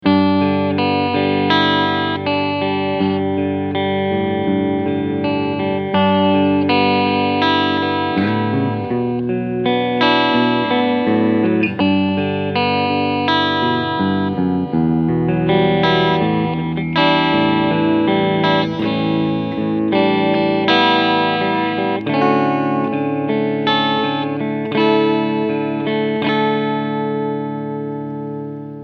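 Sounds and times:
clean electric guitar on both pickups: 0.0s - 28.8s.

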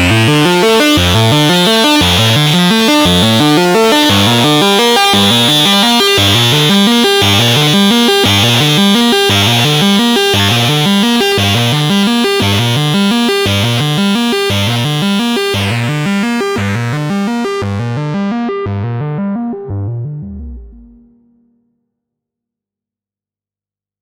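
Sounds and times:
hard sync synth sequence: 0.0s - 19.2s.

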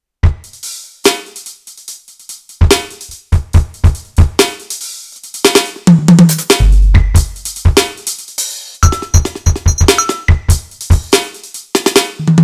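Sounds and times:
Roland TD-4KP electronic drum kit: 2.6s - 12.4s.

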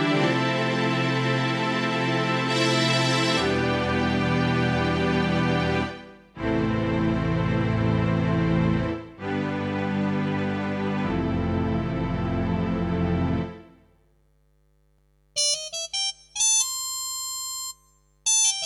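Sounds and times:
strings: 0.0s - 13.7s
brass: 0.0s - 13.8s.

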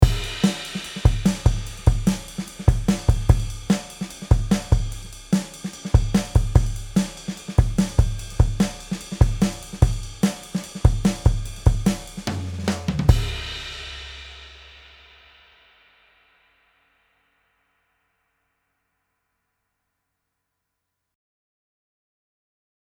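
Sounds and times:
compressed drum group: 0.0s - 15.2s.

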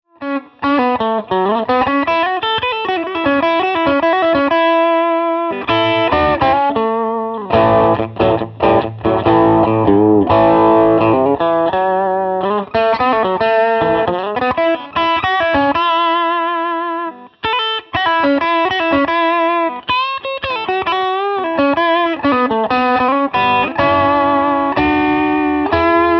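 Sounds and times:
blues music: 0.1s - 26.1s.

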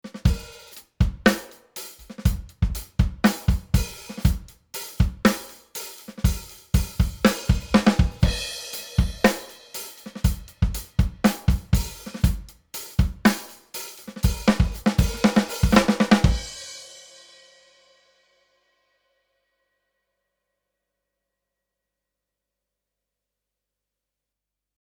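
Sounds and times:
saturated drums: 0.0s - 17.1s.

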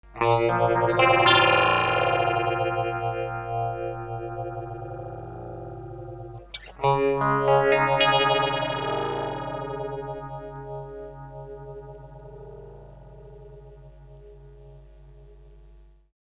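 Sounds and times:
tremolo sine tone with LFO: 0.3s - 16.0s.

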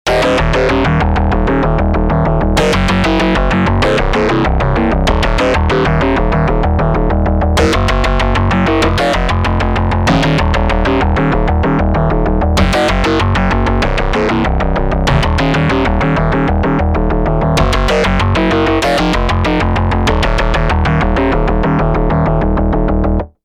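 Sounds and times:
Elektron Digitone synth bass jam: 0.1s - 23.3s.

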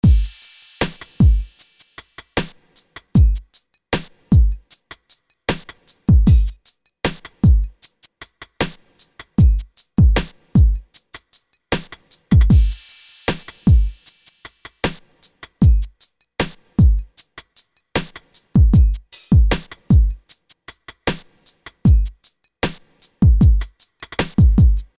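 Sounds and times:
drums: 0.0s - 24.9s.

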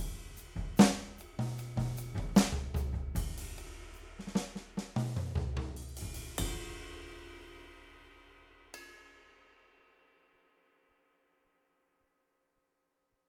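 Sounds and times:
electronic drum kit: 0.0s - 6.8s.

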